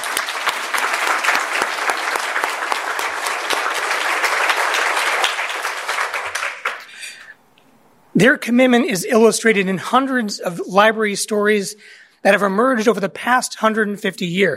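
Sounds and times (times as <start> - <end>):
audience applause: 0.0 - 7.2
speech: 8.2 - 14.5.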